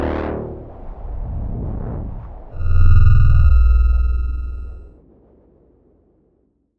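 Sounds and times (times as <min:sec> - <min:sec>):
short synth sci-fi sound: 0:02.6 - 0:04.9.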